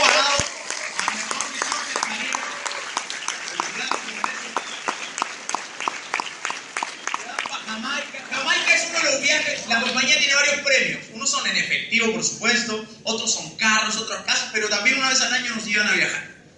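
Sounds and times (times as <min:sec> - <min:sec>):
audience applause: 0:00.0 - 0:09.6
speech: 0:09.7 - 0:16.3.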